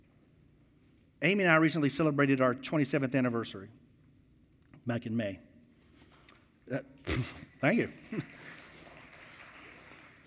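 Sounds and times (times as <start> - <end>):
speech: 1.2 - 3.8, 4.8 - 5.5, 6.7 - 8.4
audience clapping: 7.4 - 10.2.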